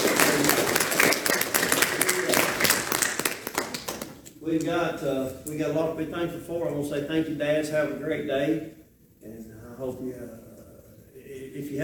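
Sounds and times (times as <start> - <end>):
audience applause: 0.0 - 4.2
speech: 4.5 - 10.4, 11.6 - 11.8.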